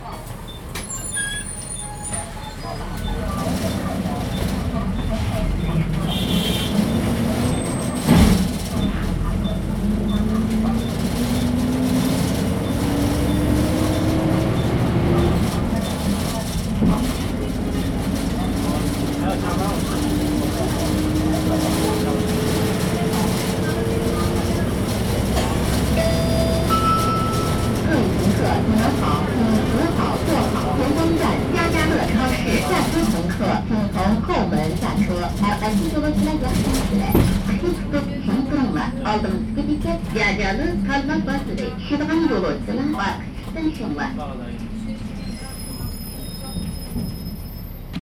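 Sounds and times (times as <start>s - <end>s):
bus in Urumqi: 0.0s - 47.9s.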